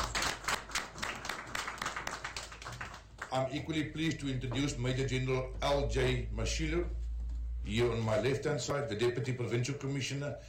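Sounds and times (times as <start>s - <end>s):
audience clapping: 0.0s - 3.8s
speech: 3.3s - 7.0s, 7.6s - 10.4s.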